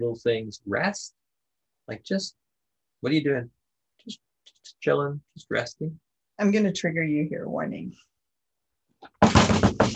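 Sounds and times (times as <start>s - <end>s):
speech: 0.0s - 1.2s, 1.9s - 2.4s, 3.0s - 8.1s
knocking on a door: 9.2s - 9.9s.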